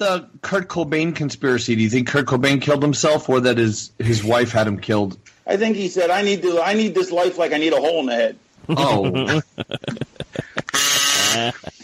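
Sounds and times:
speech: 0.0 - 10.1, 11.4 - 11.7
laughter: 8.7 - 11.8
kazoo playing: 10.6 - 11.8.

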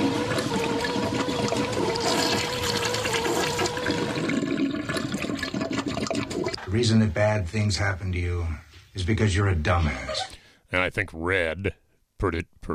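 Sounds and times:
toilet flushing: 0.0 - 7.0
speech: 6.8 - 12.7.

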